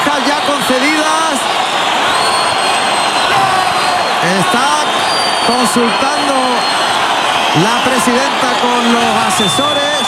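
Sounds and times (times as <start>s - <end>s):
bullring crowd cheering and clamoring to demand the bull's tail for El Fandi: 0.0s - 10.0s
speech: 4.5s - 4.8s, 5.5s - 6.8s, 7.6s - 10.0s.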